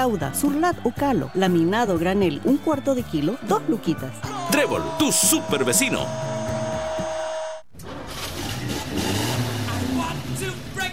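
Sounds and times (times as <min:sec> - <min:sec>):
speech: 0:00.0 - 0:06.4
short tonal musical burst: 0:04.2 - 0:07.7
car engine revving: 0:04.4 - 0:10.9.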